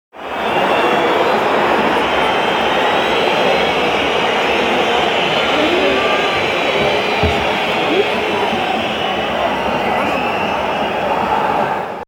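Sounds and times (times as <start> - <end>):
stadium crowd booing: 0.2 - 12.0
laughter: 3.2 - 11.5.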